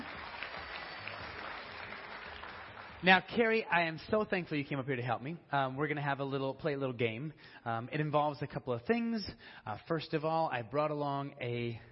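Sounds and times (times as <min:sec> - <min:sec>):
audience applause: 0:00.0 - 0:03.4
speech: 0:03.0 - 0:11.9.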